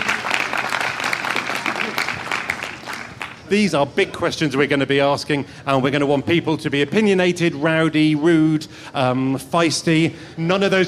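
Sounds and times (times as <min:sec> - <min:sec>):
audience applause: 0:00.0 - 0:03.5
speech: 0:03.5 - 0:10.8.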